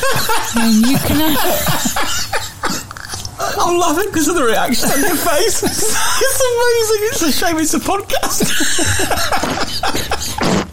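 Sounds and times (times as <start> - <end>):
laughter: 0.0 - 10.6
speech: 0.2 - 2.3, 3.6 - 10.1
comedic fart sound effect: 10.3 - 10.7.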